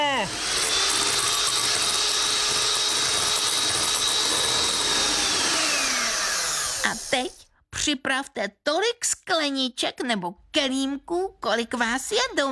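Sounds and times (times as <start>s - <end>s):
blender mixing watermelon pieces: 0.0s - 7.4s
speech: 0.2s - 0.6s, 7.9s - 12.5s.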